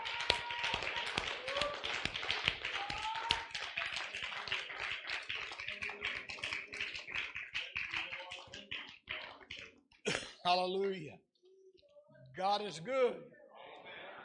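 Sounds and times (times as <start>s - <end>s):
audience clapping hands in praise: 0.0s - 9.9s
speech: 10.5s - 11.2s, 12.4s - 13.3s.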